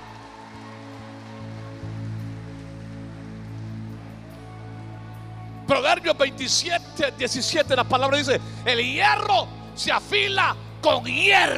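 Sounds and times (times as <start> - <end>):
men and women applauding: 0.0 - 5.6
speech: 5.7 - 11.5.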